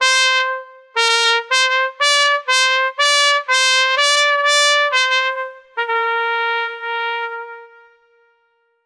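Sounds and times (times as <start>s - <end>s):
fun jolly trumpets: 0.0s - 8.6s.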